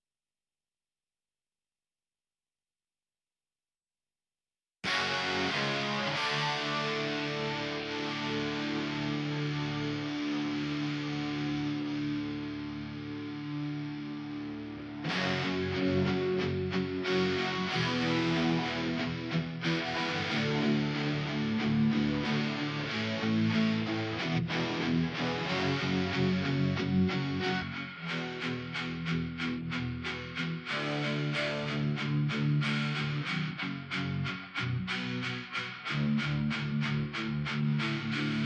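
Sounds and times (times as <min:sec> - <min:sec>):
guitar: 0:04.8 - 0:38.4.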